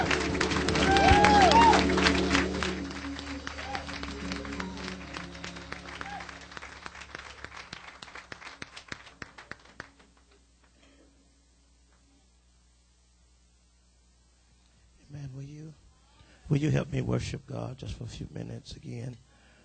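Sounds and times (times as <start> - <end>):
whoops and cheers: 0.0 - 6.5
audience applauding: 0.0 - 10.8
speech: 16.6 - 19.3.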